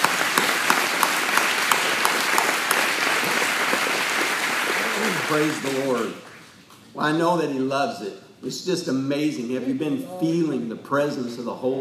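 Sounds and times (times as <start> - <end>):
audience clapping: 0.0 - 6.5
speech: 5.3 - 6.3, 7.0 - 11.7.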